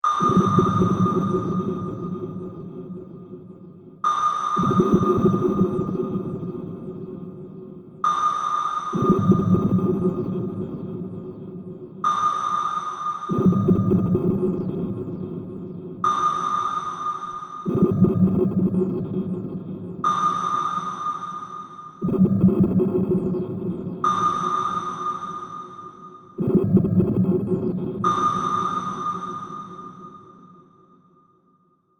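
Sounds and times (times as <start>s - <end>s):
atmospheric underwater sounds: 0.0s - 30.9s
submarine sonar frequency effect: 0.0s - 31.9s.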